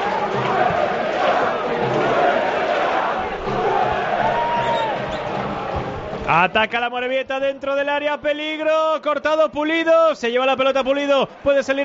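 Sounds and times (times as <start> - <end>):
football stadium crowd chanting during a Huesca match: 0.0 - 6.3
speech: 6.3 - 11.8.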